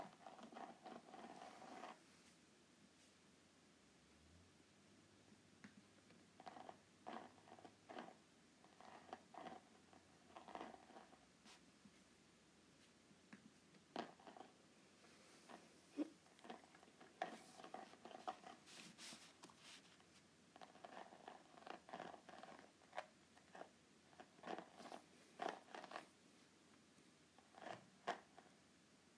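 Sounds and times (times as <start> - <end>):
faint low hum: 0.0 - 29.1
groovy note pad rustling and tapping: 17.1 - 20.2.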